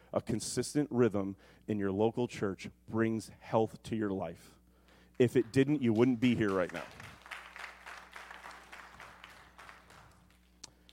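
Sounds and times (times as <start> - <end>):
steady low electrical hum: 0.0 - 10.9
speech: 0.1 - 4.6, 5.2 - 7.1
audience clapping: 5.1 - 10.9.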